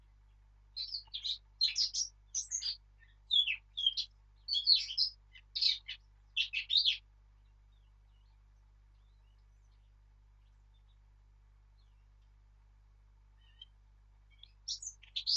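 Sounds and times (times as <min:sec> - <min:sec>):
Sylvia atricapilla: 0:00.8 - 0:11.0, 0:13.4 - 0:15.3.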